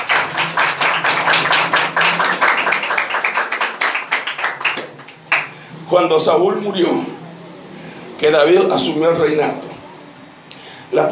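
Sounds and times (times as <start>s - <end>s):
audience applauding: 0.0s - 5.6s
speech: 5.9s - 7.2s, 8.2s - 9.7s.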